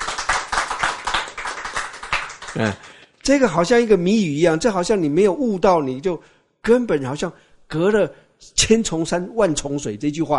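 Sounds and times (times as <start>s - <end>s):
audience clapping: 0.0s - 3.1s
speech: 2.6s - 10.3s.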